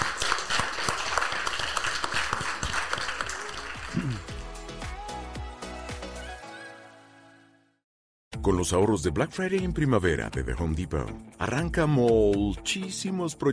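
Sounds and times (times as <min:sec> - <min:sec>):
applause: 0:00.0 - 0:05.1
speech: 0:08.5 - 0:13.5.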